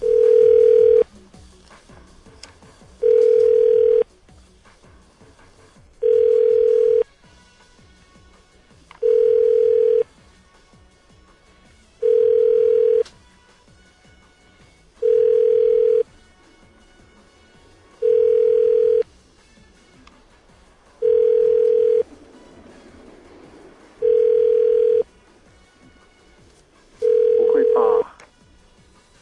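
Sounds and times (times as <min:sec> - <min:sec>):
telephone ringback tone during outgoing call: 0:00.0 - 0:01.1, 0:03.0 - 0:04.1, 0:06.0 - 0:07.1, 0:09.0 - 0:10.0, 0:12.0 - 0:13.0, 0:15.0 - 0:16.1, 0:18.0 - 0:19.1, 0:21.0 - 0:22.1, 0:24.0 - 0:25.1, 0:27.0 - 0:28.0.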